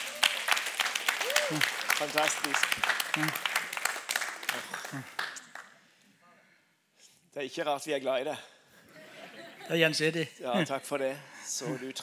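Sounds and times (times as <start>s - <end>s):
audience applause: 0.0s - 5.7s
speech: 1.5s - 3.6s, 4.5s - 5.2s, 7.4s - 8.6s, 9.7s - 12.0s
laughter: 4.4s - 5.2s, 8.8s - 12.0s.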